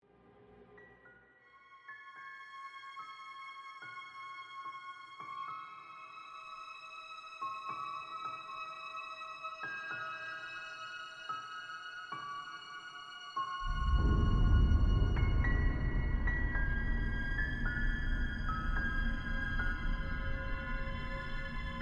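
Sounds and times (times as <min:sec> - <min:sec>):
mystery strings build production music: 0:10.8 - 0:21.8.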